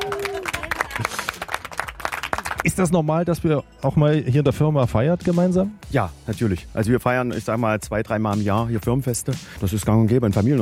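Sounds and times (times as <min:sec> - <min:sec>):
staff clapping at a company party: 0:00.0 - 0:02.9
speech: 0:01.0 - 0:01.2, 0:02.7 - 0:10.6.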